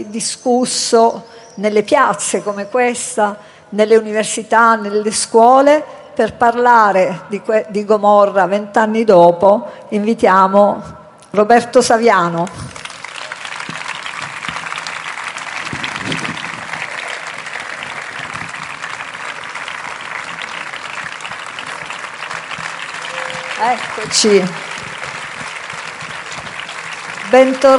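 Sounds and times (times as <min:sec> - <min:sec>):
speech: 0:00.0 - 0:12.8, 0:23.7 - 0:24.7, 0:27.3 - 0:27.7
audience applause: 0:12.6 - 0:27.7.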